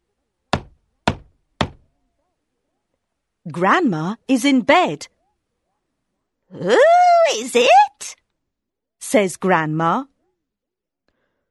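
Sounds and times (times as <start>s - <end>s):
knocking on a wooden door: 0.5s - 1.8s
speech: 3.5s - 5.1s, 6.5s - 8.2s, 9.0s - 10.1s.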